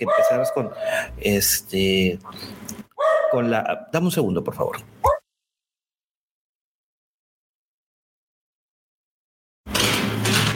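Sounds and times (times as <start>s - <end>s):
dog barking: 0.0s - 0.9s, 3.0s - 3.9s, 5.0s - 5.2s
speech: 0.0s - 2.6s, 3.3s - 5.0s.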